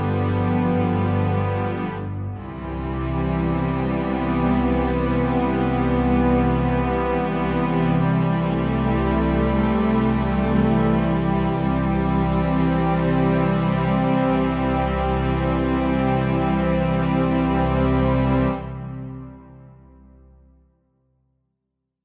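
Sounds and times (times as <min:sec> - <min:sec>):
string progression: 0:00.0 - 0:19.4.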